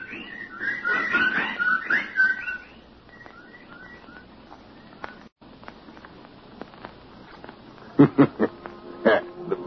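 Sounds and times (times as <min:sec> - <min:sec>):
birds calling: 0:00.0 - 0:05.3
laughter: 0:08.0 - 0:09.6.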